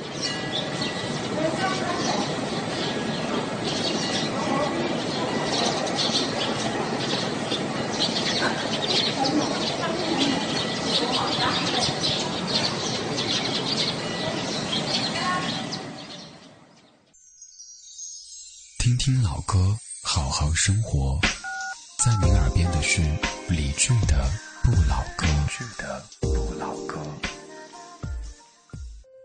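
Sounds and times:
outdoor noise: 0:00.0 - 0:19.0
small birds chirping by a canal: 0:00.0 - 0:27.5
speech: 0:22.8 - 0:26.8.

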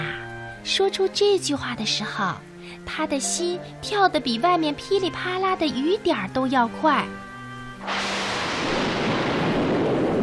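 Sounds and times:
speech: 0:00.7 - 0:08.0
thunder rumbling: 0:07.8 - 0:10.2.

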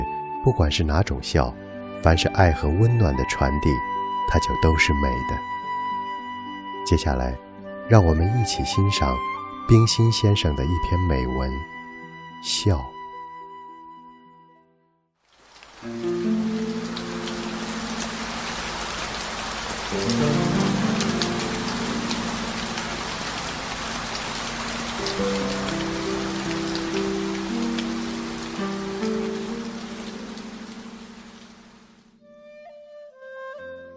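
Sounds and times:
soft melodic music bed: 0:00.0 - 0:14.8, 0:15.8 - 0:33.9
speech: 0:00.4 - 0:05.5, 0:06.8 - 0:11.8, 0:12.4 - 0:13.0, 0:15.8 - 0:16.1
steady rain: 0:15.2 - 0:32.1.

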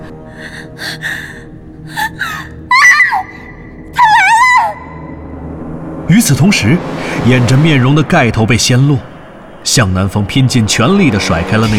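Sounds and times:
startled cry of alarm: 0:00.4 - 0:05.1
speech: 0:06.1 - 0:11.7.

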